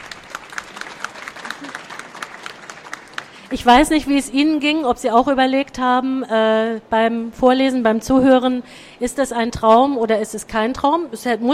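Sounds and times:
audience applause: 0.0 - 3.6
speech: 3.5 - 11.5.

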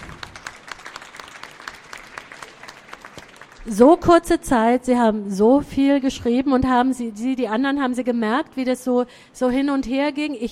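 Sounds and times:
audience applause: 0.0 - 3.7
speech: 3.6 - 10.4.

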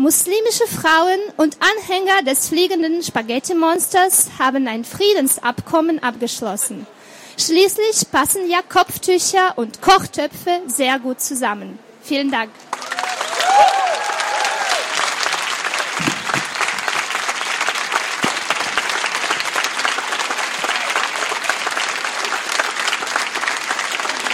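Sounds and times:
speech: 0.0 - 12.8, 13.6 - 13.8
audience applause: 12.6 - 24.3.

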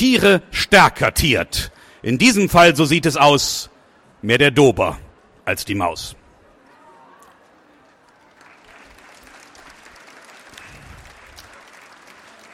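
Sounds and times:
speech: 0.0 - 6.2
audience applause: 8.0 - 12.5.

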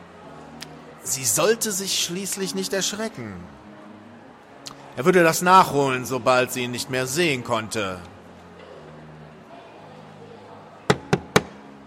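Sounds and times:
speech: 1.1 - 3.6, 5.0 - 8.2
knocking on a door: 10.9 - 11.6.

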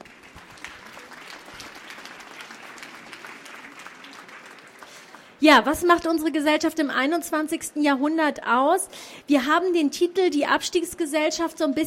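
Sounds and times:
audience applause: 0.0 - 5.4
speech: 5.4 - 11.8.

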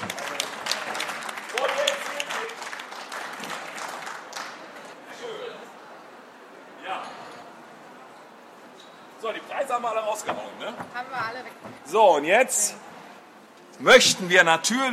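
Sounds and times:
audience applause: 0.0 - 4.8
speech: 9.8 - 12.9, 13.8 - 14.9.

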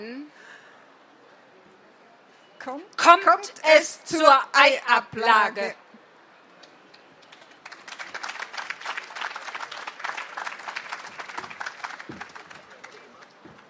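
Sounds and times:
speech: 2.6 - 5.8
audience applause: 7.2 - 13.6.

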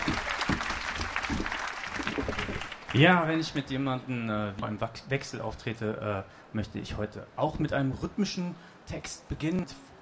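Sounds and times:
audience applause: 0.0 - 3.1
speech: 3.0 - 9.9.

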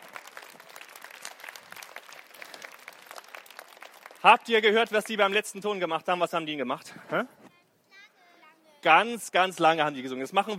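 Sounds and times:
applause: 0.0 - 5.6
speech: 4.2 - 7.4, 8.8 - 10.5.

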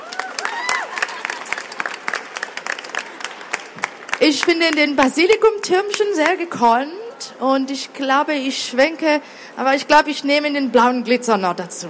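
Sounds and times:
applause from a small group: 0.0 - 6.4
speech: 4.2 - 11.8.

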